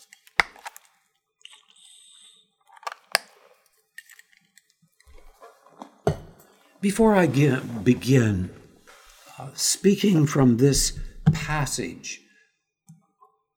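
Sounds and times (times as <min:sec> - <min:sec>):
person sipping water: 0:01.4 - 0:06.8
speech: 0:06.8 - 0:08.6, 0:09.4 - 0:12.2.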